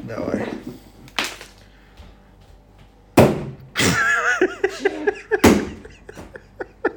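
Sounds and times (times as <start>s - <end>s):
faint hum: 0.0s - 6.9s
speech: 0.1s - 0.5s
knocking on a refrigerator: 3.2s - 3.6s, 5.4s - 5.8s
laughter: 3.8s - 6.9s.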